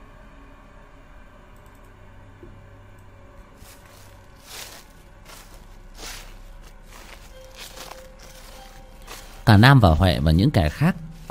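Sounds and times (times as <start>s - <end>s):
footsteps crunching through rustling leaves: 3.6s - 11.2s
speech: 9.5s - 11.2s.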